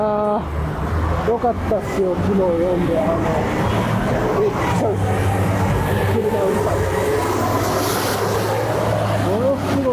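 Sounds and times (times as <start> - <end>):
large truck carrying an excavator passing: 0.0 - 9.9
speech: 1.2 - 7.7.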